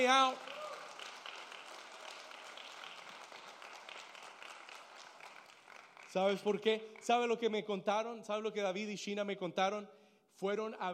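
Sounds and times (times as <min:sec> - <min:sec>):
speech: 0:00.0 - 0:00.6, 0:06.1 - 0:10.9
audience applauding: 0:00.0 - 0:07.3.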